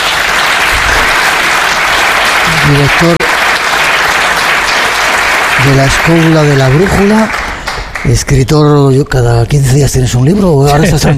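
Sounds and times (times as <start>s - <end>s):
talk show audience applause greeting a guest: 0.0s - 8.6s
speech: 2.7s - 3.2s, 5.7s - 7.4s, 8.0s - 11.1s.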